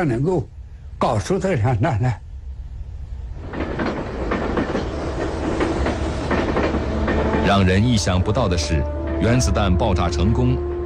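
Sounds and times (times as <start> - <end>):
speech: 0.0 - 2.2, 7.5 - 10.7
passenger train running on rails: 0.0 - 10.8
wheels clickety-clack over track joints: 3.4 - 8.2.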